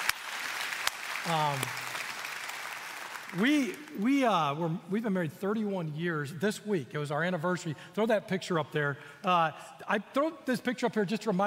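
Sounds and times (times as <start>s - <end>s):
audience applause: 0.0s - 3.8s
speech: 1.2s - 1.8s, 3.3s - 11.4s.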